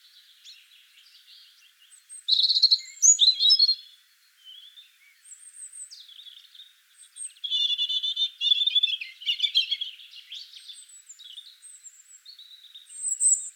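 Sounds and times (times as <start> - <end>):
European robin Erithacus rubecula singing: 0.0 - 13.5.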